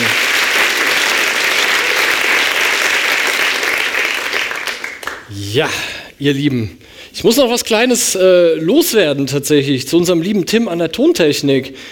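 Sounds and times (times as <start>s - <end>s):
audience applause: 0.0s - 5.3s
speech: 5.5s - 11.9s.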